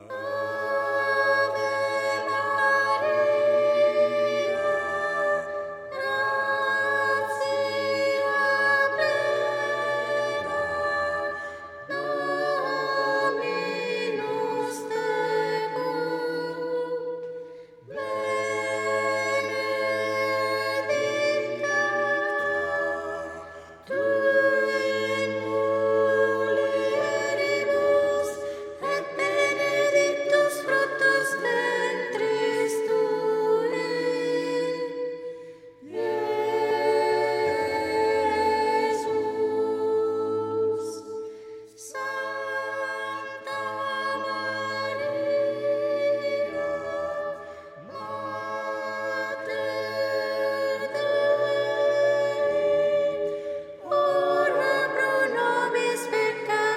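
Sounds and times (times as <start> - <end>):
soprano singing: 0.0 - 56.7.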